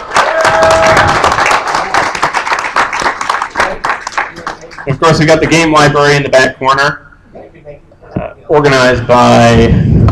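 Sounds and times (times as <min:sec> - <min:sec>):
audience applause: 0:00.0 - 0:05.0
speech: 0:05.1 - 0:07.0, 0:08.5 - 0:09.9.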